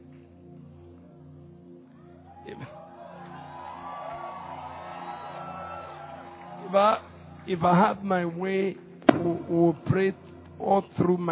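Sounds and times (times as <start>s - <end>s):
speech: 2.4s - 2.9s, 6.7s - 11.2s
audience clapping and cheering: 2.6s - 7.6s.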